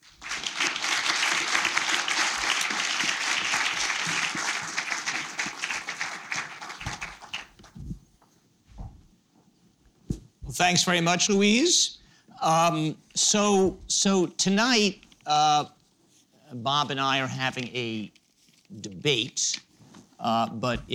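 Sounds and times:
audience applause welcoming speakers: 0:00.0 - 0:07.6
speech: 0:10.6 - 0:15.8, 0:16.6 - 0:19.6, 0:20.2 - 0:20.9.

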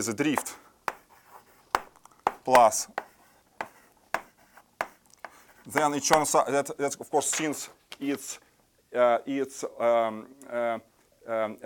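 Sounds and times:
speech: 0:00.0 - 0:00.6, 0:02.4 - 0:03.0, 0:05.7 - 0:11.6
handwriting an equation during a lecture: 0:00.3 - 0:06.4
faint writing scratches: 0:00.4 - 0:06.3.

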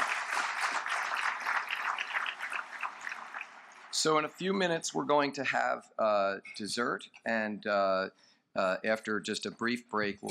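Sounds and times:
audience applause: 0:00.0 - 0:04.3
speech: 0:04.0 - 0:10.2.

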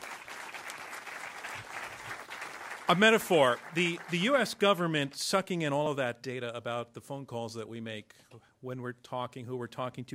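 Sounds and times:
audience applause: 0:00.0 - 0:05.1
speech: 0:02.9 - 0:10.1.

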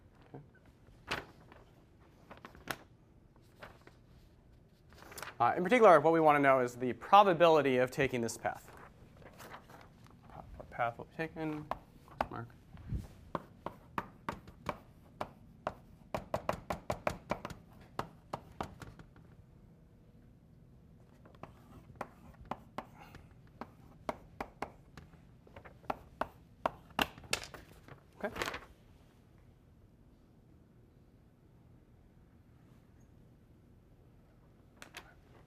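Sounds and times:
speech: 0:05.4 - 0:08.7, 0:10.8 - 0:12.6
writing on a board during a lecture: 0:13.3 - 0:19.0, 0:21.2 - 0:25.1, 0:25.8 - 0:27.0.

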